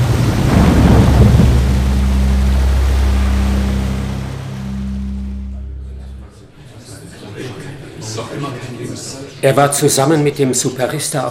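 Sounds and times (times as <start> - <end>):
huge flood wave surging: 0.0 - 5.9
speech: 9.4 - 11.2.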